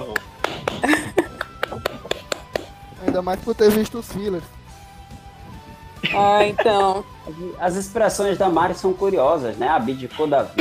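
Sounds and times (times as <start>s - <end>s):
clapping: 0.0s - 2.8s
laughter: 0.6s - 2.2s, 6.0s - 7.0s
speech: 0.8s - 1.3s, 3.1s - 4.6s, 6.1s - 10.5s.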